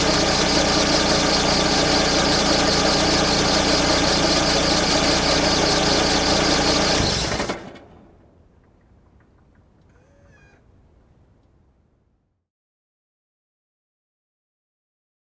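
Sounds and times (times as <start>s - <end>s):
old car approaching and parking: 0.0s - 9.8s.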